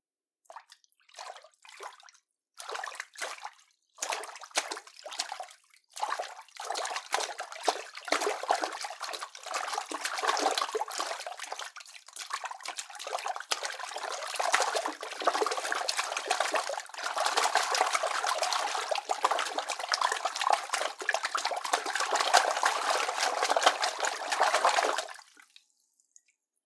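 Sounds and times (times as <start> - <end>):
frantic splashing: 6.0 - 11.6, 12.8 - 25.4.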